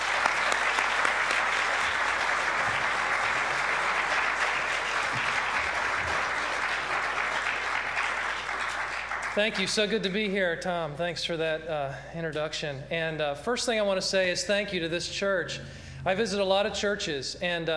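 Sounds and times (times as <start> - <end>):
audience applause: 0.0 - 9.9
speech: 9.4 - 17.7.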